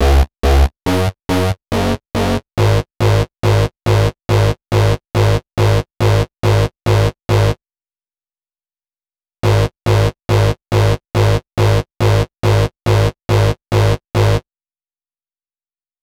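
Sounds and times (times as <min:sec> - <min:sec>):
bass: 0:00.0 - 0:07.6, 0:09.4 - 0:14.4.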